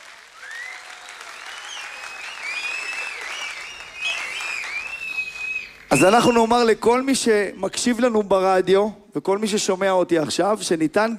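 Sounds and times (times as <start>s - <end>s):
crowd clapping: 0.0s - 6.4s
whistles and cheers: 0.1s - 6.7s
speech: 6.0s - 11.1s.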